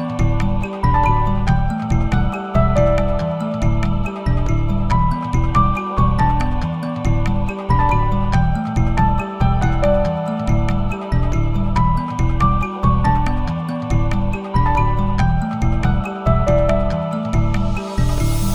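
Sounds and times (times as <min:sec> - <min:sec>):
fantasy music loop at 140 BPM: 0:00.0 - 0:18.5.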